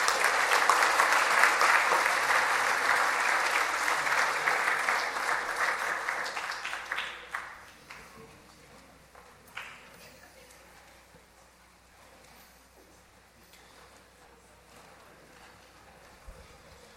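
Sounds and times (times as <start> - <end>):
audience applause for graduates: 0.0 - 8.3.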